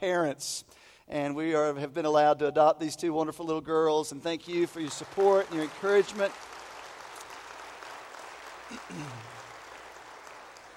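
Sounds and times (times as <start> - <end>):
speech: 0.0 - 6.5, 8.8 - 9.3
audience applauding: 4.8 - 10.7.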